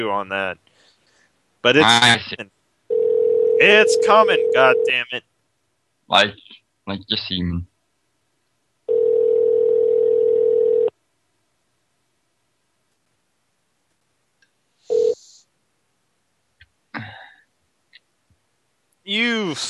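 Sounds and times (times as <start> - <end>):
speech: 0.0 - 0.7, 1.6 - 2.6, 3.6 - 5.3, 6.1 - 7.7, 19.1 - 19.6
telephone ringback tone of an unanswered call: 2.9 - 4.9, 8.9 - 10.9, 14.9 - 15.2.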